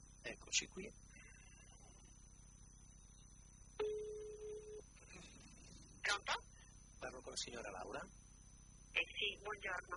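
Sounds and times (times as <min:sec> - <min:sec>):
faint noise: 0:00.0 - 0:09.9
speech: 0:00.2 - 0:01.1, 0:07.0 - 0:08.2, 0:09.0 - 0:09.9
telephone ringback tone as a call is placed to a patient: 0:03.8 - 0:04.9.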